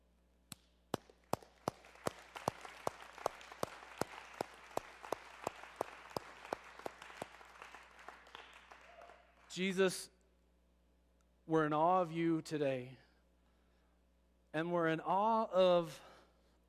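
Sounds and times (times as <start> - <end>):
audience clapping: 1.0 - 9.8
speech: 9.6 - 10.2, 11.5 - 13.0, 14.5 - 16.1.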